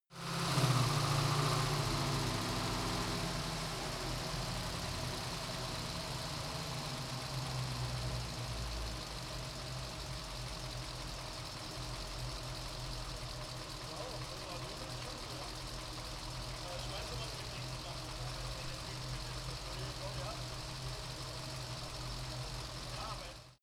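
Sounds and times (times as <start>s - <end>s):
Chevrolet Camaro engine slowing down: 0.1s - 23.6s.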